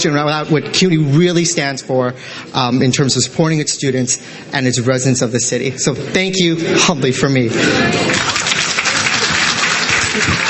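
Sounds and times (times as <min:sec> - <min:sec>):
speech: 0:00.0 - 0:08.6, 0:10.2 - 0:10.4
award-ceremony audience applause at a Brooklyn College and CUNY event: 0:07.8 - 0:10.4.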